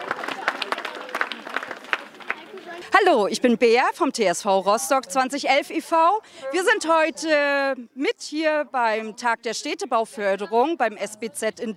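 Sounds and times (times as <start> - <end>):
small crowd clapping at an outdoor community event: 0.0 - 2.8
speech: 2.9 - 11.7.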